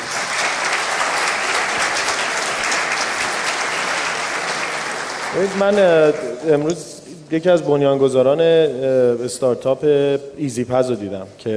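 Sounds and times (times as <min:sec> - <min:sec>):
audience applause at a panel at a startup entrepreneurs' Yalda event: 0:00.0 - 0:06.6
speech: 0:05.4 - 0:11.5.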